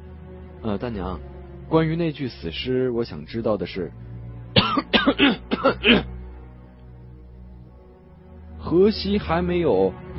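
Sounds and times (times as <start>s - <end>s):
speech: 0.6s - 4.1s, 5.0s - 6.1s, 8.7s - 10.0s
loud cough: 4.6s - 6.1s.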